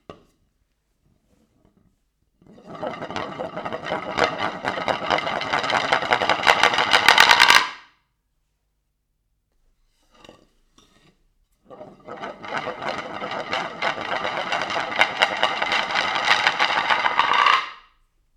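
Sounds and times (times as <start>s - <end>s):
wooden board accelerando: 2.7s - 7.8s, 11.7s - 17.8s.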